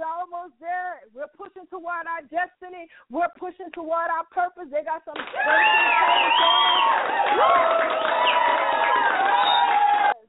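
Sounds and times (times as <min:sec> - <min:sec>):
speech: 0:01.9 - 0:08.4
excited audience cheering and shouting at a church service: 0:05.2 - 0:10.2.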